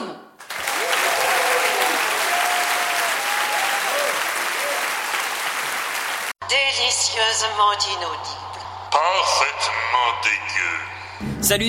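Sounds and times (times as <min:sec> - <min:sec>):
audience applause: 0:00.4 - 0:06.4
speech: 0:07.1 - 0:08.4, 0:09.0 - 0:11.6.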